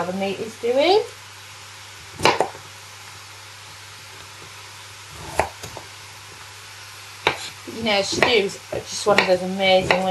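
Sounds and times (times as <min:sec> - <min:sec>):
speech: 0:00.0 - 0:01.2, 0:07.8 - 0:10.0
knife chopping a swede on a board: 0:02.2 - 0:02.6, 0:05.2 - 0:05.8, 0:07.2 - 0:08.4, 0:09.2 - 0:10.0.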